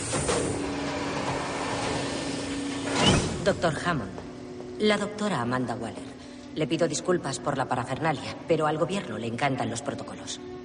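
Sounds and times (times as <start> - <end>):
door closing: 0.0 - 3.7
speech: 3.4 - 4.2, 4.8 - 10.6.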